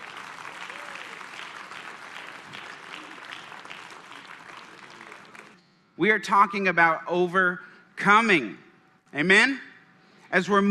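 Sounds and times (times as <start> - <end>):
audience applause welcoming a pastor at a church service: 0.0 - 5.6
speech: 6.0 - 9.7, 10.3 - 10.6.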